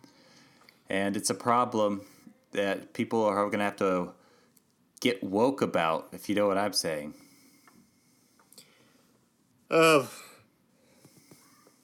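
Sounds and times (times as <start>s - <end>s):
speech: 0.9s - 4.2s, 5.0s - 7.2s, 9.7s - 10.3s
person yawning: 9.7s - 10.4s.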